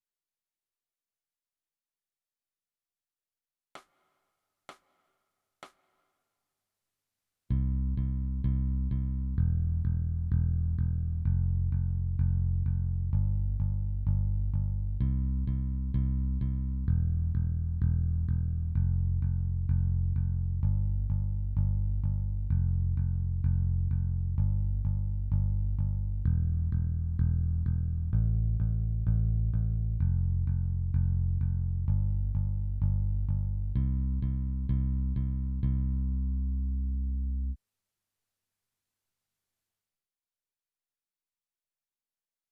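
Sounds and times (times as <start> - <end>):
bass: 7.5 - 37.6.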